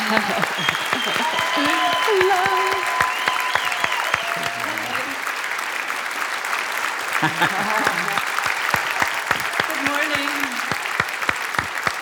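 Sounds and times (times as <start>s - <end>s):
laughter: 0.0s - 3.3s, 4.2s - 5.2s, 7.0s - 10.6s
voices calling out: 0.0s - 5.2s, 7.2s - 8.4s
church congregation at Cathedral of Faith applauding to welcome a guest: 0.0s - 12.0s
speech: 0.1s - 3.0s, 7.2s - 8.3s.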